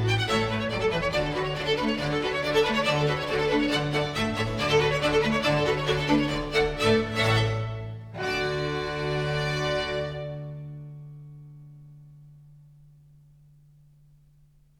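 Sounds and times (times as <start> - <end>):
baroque concerto for strings and continuo in D major, allegro: 0.0 - 11.5.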